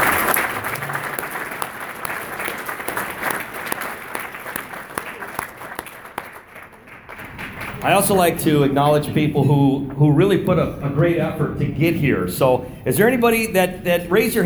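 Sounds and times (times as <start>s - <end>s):
applause: 0.0s - 8.6s
speech: 7.8s - 14.4s.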